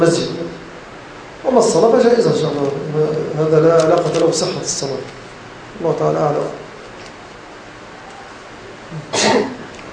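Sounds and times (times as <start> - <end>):
speech: 0.0 - 0.4, 1.4 - 6.6
hiss: 0.0 - 9.9
person sneezing: 8.9 - 9.7.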